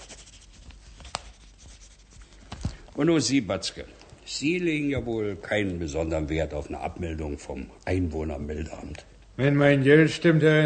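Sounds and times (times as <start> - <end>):
pen writing on a release certificate: 0.0 - 2.2
speech: 3.0 - 10.6.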